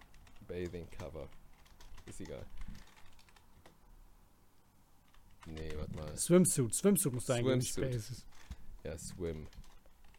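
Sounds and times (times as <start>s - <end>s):
computer keyboard clicking typing a search query: 0.0s - 3.8s, 5.1s - 6.3s, 9.2s - 10.1s
speech: 0.5s - 1.4s, 2.1s - 2.7s, 5.4s - 9.7s.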